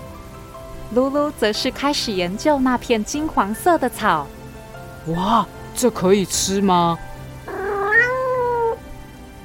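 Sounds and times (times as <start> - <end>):
speech: 0.9 - 4.4, 5.0 - 7.1
cat meowing: 7.4 - 8.8.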